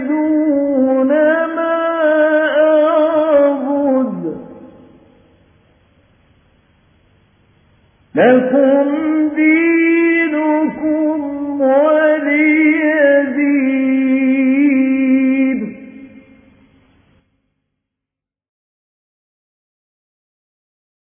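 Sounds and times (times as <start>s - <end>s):
mujawwad Quran recitation: 0.0s - 5.0s, 8.1s - 16.2s.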